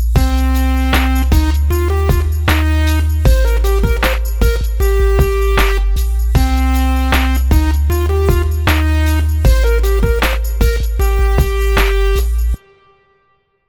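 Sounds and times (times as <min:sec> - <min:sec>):
simple sixteenth note rhythms: 0:00.2 - 0:12.6.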